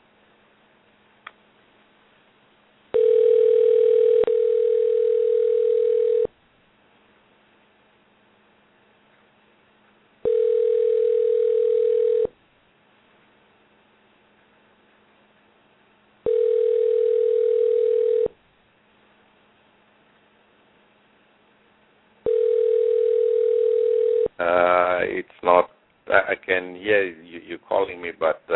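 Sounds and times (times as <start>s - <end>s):
outgoing phone call ringing tone: 2.9s - 6.3s, 10.2s - 12.4s, 16.2s - 18.4s, 22.2s - 24.3s
voice talking: 24.4s - 28.5s.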